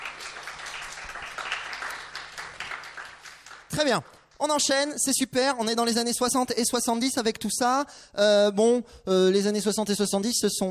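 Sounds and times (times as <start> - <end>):
audience applause: 0.0 - 4.2
speech: 3.8 - 10.7.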